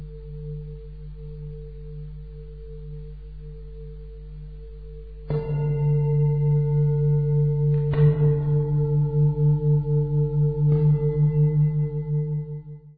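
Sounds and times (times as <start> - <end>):
three-tone singing bowl: 0.0 - 12.9.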